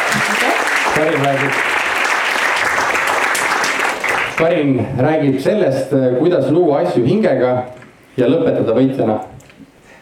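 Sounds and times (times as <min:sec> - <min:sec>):
audience applause: 0:00.0 - 0:04.6
speech: 0:01.0 - 0:01.7, 0:04.4 - 0:09.4.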